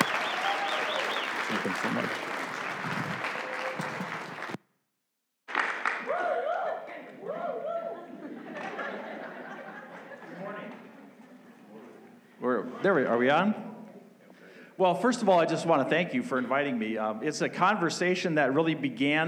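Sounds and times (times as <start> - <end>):
audience clapping to welcome a speaker: 0.0 - 4.6, 5.5 - 7.2
audience laughter: 0.0 - 4.6, 6.8 - 12.2
speech: 1.5 - 3.0, 12.9 - 13.6, 14.8 - 19.2.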